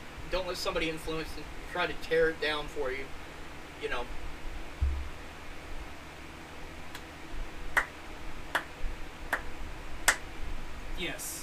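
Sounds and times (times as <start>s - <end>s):
steady low hiss: 0.0s - 11.4s
speech: 0.3s - 3.2s, 3.8s - 4.2s
sharp hand claps: 7.8s - 8.7s.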